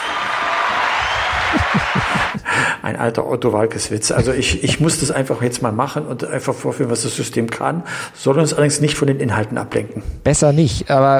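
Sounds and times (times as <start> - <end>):
crowd applause: 0.0 - 2.6
laughter: 0.4 - 2.7, 4.1 - 5.2
speech: 2.8 - 11.1.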